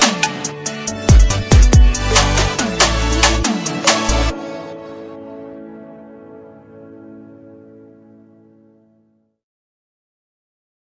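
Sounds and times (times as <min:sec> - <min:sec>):
nightlife trap pop music: 0:00.0 - 0:05.1.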